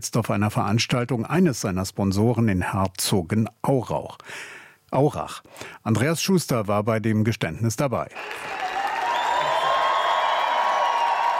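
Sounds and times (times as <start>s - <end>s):
speech: 0.0s - 8.6s
roaring crowd clapping: 8.1s - 11.3s.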